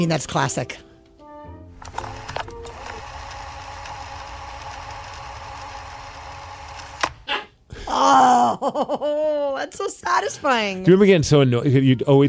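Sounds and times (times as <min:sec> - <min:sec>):
speech: 0:00.0 - 0:00.9, 0:08.0 - 0:12.2
cassette tape rewinding: 0:01.8 - 0:07.2
high-pitched whine from the straining motor: 0:01.9 - 0:07.1
laughter: 0:08.3 - 0:09.5.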